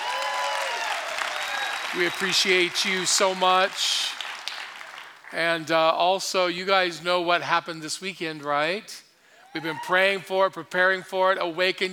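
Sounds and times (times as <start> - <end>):
crowd applause: 0.0 - 5.4
speech: 1.9 - 4.2, 5.3 - 11.9.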